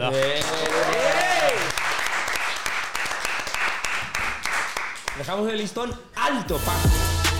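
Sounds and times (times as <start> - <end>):
speech: 0.0 - 1.6, 5.2 - 7.3
crowd applause: 0.0 - 5.2
person cheering: 0.4 - 1.7.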